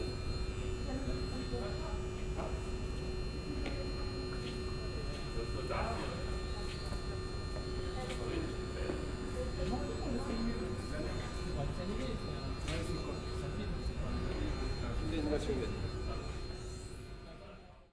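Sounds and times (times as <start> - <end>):
Paris subway hall ambience: 0.0 - 17.9.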